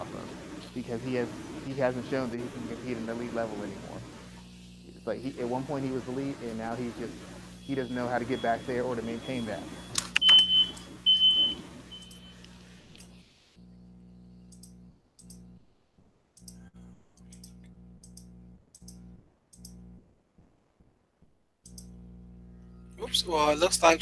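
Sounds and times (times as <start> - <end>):
noisy static: 0.0 - 14.8, 21.7 - 24.0
low droning hum: 0.0 - 15.7, 16.4 - 20.0, 21.7 - 24.0
speech: 0.7 - 4.1, 5.0 - 9.8, 23.1 - 24.0
fire drill alarm on a call: 7.6 - 12.5
clicks: 9.9 - 13.2, 14.5 - 15.6, 16.4 - 19.9, 21.6 - 22.0.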